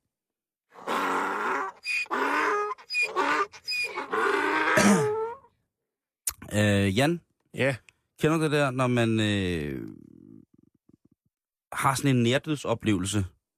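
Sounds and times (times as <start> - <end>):
donkey braying: 0.8 - 5.5
speech: 4.8 - 5.1, 6.6 - 10.0, 11.7 - 13.4.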